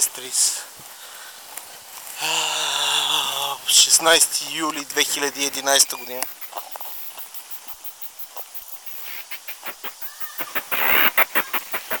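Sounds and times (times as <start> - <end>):
cicada ticking song: 0.0 - 11.9
steady hiss: 0.0 - 11.9
speech: 0.2 - 0.8, 4.0 - 6.4.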